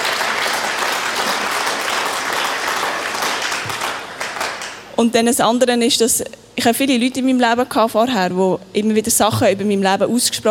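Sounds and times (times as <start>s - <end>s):
audience applause: 0.0s - 4.9s
speech: 5.0s - 10.4s.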